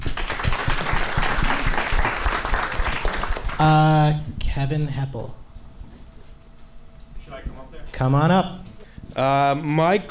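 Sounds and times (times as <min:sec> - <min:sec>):
audience applause: 0:00.0 - 0:03.6
speech: 0:03.6 - 0:05.4, 0:07.8 - 0:08.6, 0:09.2 - 0:10.1.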